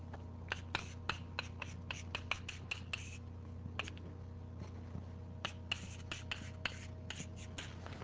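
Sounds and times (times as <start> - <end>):
low steady hum: 0.0 - 8.0
chalk writing on a lecture board: 0.5 - 3.2, 5.4 - 7.8.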